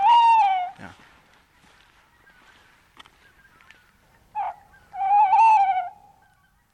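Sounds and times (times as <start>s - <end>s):
male tawny owl territorial hooting: 0.0s - 0.8s, 3.2s - 6.6s.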